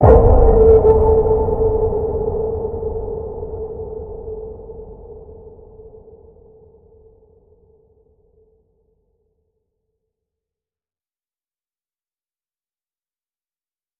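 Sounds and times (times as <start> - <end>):
deep waters ping: 0.0 - 6.1.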